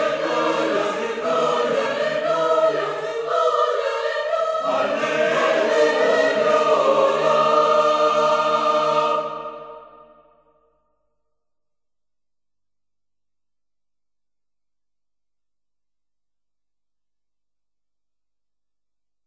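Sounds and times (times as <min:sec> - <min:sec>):
chorus singing Gregorian polyphony: 0:00.0 - 0:10.4.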